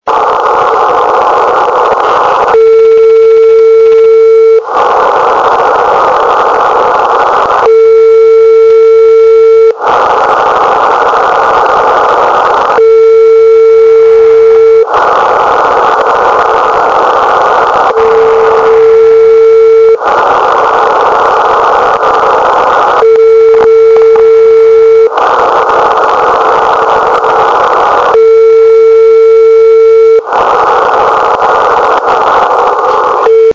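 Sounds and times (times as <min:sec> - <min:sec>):
HAARP radio echo: 0:00.1 - 0:33.5.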